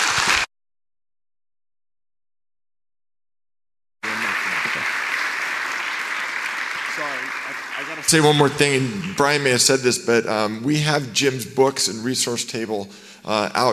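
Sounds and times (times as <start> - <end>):
audience applause welcoming a speaker: 0.0 - 0.5, 4.0 - 9.8
speech: 7.0 - 13.7.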